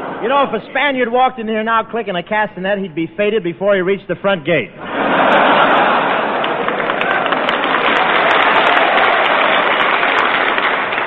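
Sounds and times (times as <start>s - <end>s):
speech: 0.2s - 5.8s
laughter: 4.4s - 7.8s
audience applause: 5.1s - 11.0s.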